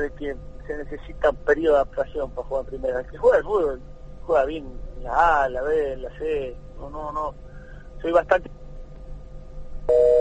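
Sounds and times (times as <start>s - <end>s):
speech: 0.0s - 8.6s
low noise: 0.0s - 10.2s
telephone busy signal after a call cuts off: 9.9s - 10.2s.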